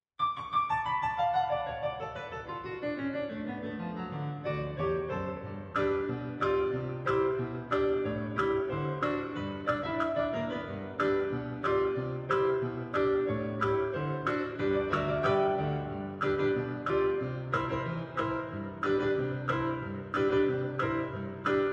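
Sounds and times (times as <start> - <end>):
bright hoedown music: 0.3 - 21.7.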